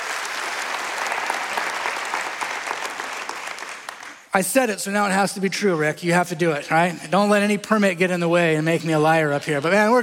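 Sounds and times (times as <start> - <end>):
audience applause: 0.0 - 4.3
speech: 4.4 - 10.0.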